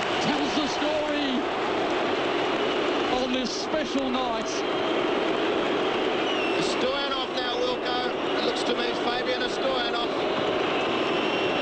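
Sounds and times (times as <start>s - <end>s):
stadium crowd cheering after a score: 0.0s - 11.6s
speech: 3.8s - 5.0s.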